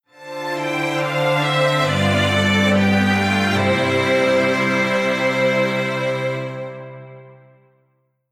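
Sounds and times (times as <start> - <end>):
strings: 0.1 - 7.8.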